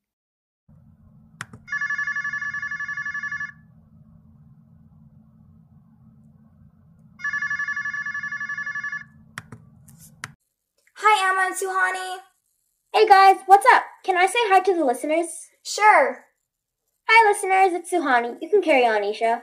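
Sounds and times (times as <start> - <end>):
steady low hum: 0.7 - 10.8
telephone ringing: 1.6 - 3.7, 7.2 - 9.2
speech: 11.6 - 12.3, 13.0 - 16.3, 17.1 - 19.4.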